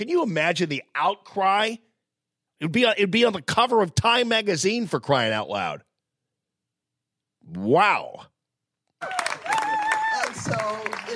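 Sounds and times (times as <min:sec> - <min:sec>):
speech: 0:00.0 - 0:01.9, 0:02.6 - 0:05.9, 0:07.4 - 0:08.3, 0:09.0 - 0:09.6
crowd cheering: 0:09.0 - 0:11.1.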